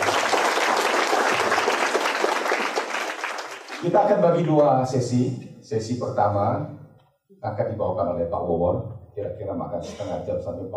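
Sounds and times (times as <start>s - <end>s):
audience applause at a talk: 0.0s - 4.5s
speech: 3.8s - 6.8s, 7.4s - 10.7s.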